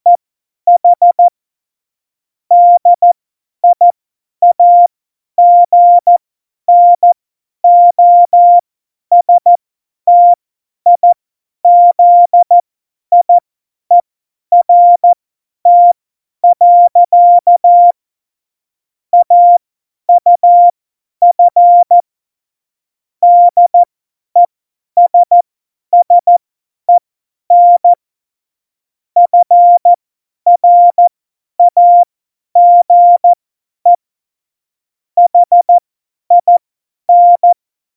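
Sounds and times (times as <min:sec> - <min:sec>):
CW Morse code beeps: 0:00.1 - 0:01.3, 0:02.5 - 0:03.8, 0:04.4 - 0:11.1, 0:11.7 - 0:13.3, 0:14.6 - 0:18.0, 0:19.2 - 0:22.0, 0:23.2 - 0:25.4, 0:26.0 - 0:26.4, 0:27.5 - 0:28.0, 0:29.2 - 0:34.0, 0:35.2 - 0:37.6.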